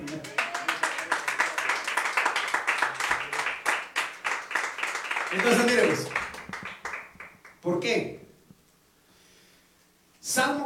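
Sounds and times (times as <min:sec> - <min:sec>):
audience clapping hands: 0:00.0 - 0:07.6
speech: 0:05.3 - 0:06.2, 0:07.6 - 0:08.2, 0:10.4 - 0:10.6.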